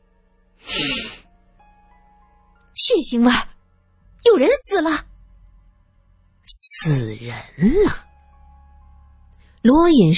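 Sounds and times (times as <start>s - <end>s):
sniffing through the nose: 0.6s - 1.2s
speech: 2.9s - 3.5s, 4.4s - 5.1s, 6.8s - 8.0s, 9.6s - 10.1s.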